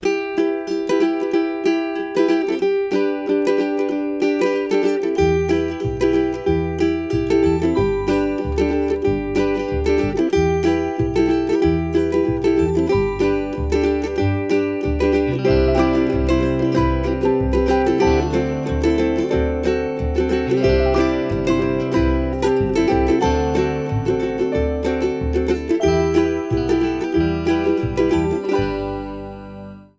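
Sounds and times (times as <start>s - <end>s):
pleasant ukulele strumming: 0.0s - 29.9s.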